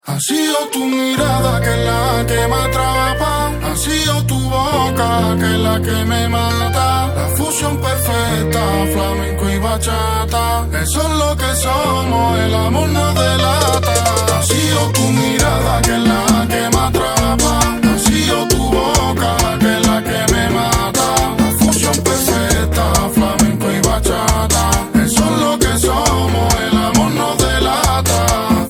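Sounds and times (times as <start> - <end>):
flamenco and bachata music: 0.2 - 28.6.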